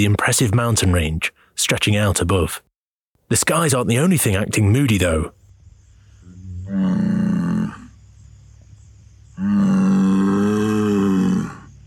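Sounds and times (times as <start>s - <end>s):
speech: 0.0s - 2.7s, 3.3s - 5.4s, 6.7s - 7.4s
Tauros bull bellowing grunts in the Velebit Mountains of Croatia: 6.3s - 8.0s, 9.4s - 11.8s.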